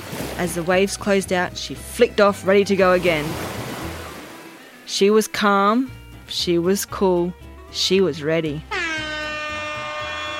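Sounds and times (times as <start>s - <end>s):
speech: 0.4s - 3.6s, 4.9s - 8.7s
siren at a surf contest: 8.7s - 10.3s.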